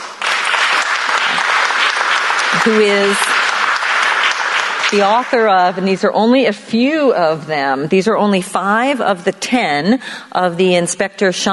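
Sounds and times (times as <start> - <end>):
audience applause welcoming an author: 0.0 - 6.0
speech: 2.6 - 3.4, 4.9 - 11.5.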